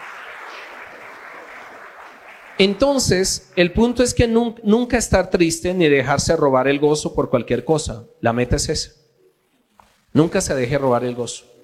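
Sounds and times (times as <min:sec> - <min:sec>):
audience applauding: 0:00.0 - 0:04.1
speech: 0:02.6 - 0:09.0, 0:10.1 - 0:11.5.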